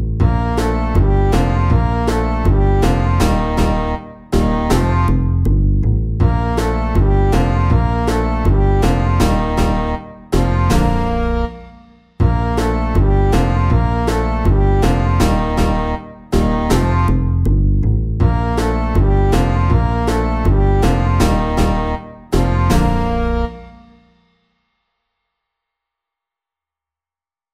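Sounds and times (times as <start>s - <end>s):
slow line dance music: 0.2s - 5.2s, 6.2s - 11.5s, 12.2s - 17.3s, 18.2s - 23.8s.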